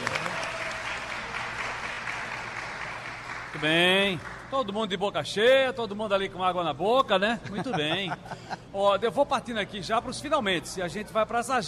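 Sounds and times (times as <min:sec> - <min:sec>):
applause: 0:00.0 - 0:04.7
speech: 0:03.6 - 0:11.6
laughter: 0:07.3 - 0:08.9.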